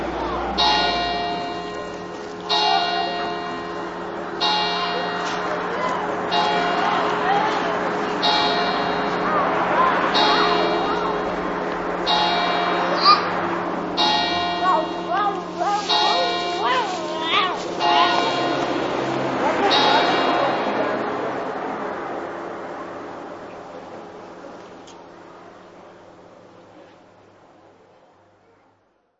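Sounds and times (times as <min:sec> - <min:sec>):
bells ringing: 0:00.2 - 0:23.4.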